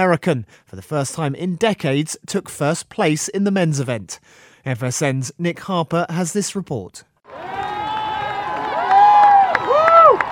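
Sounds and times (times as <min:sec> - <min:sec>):
speech: 0:00.0 - 0:07.7
crowd cheering at the Boston Marathon finish line: 0:07.3 - 0:10.3.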